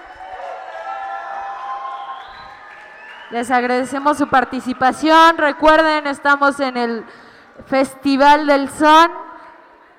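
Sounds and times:
crowd shouting and whooping: 0.0 - 3.3
crowd clapping: 0.0 - 3.7
speech: 3.3 - 9.2.

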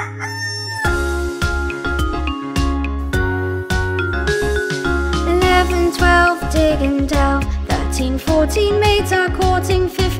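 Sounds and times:
cartoonish hen sound effect squawk: 0.0 - 1.0
bouncy rhythmic musical backing with thumping bass and chiming notes: 0.8 - 10.1
speech: 5.9 - 10.1.

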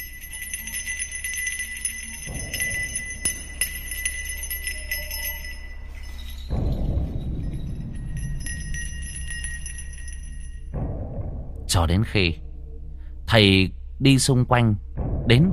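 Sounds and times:
hand bell ringing: 0.0 - 10.7
speech: 11.8 - 12.4, 13.3 - 15.5.

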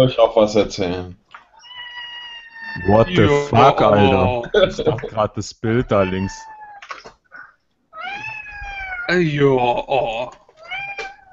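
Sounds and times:
speech: 0.0 - 1.2, 2.8 - 7.1, 9.1 - 10.4
cat meowing: 1.5 - 4.4, 5.8 - 9.2, 10.6 - 11.3
laughter: 2.8 - 6.2.

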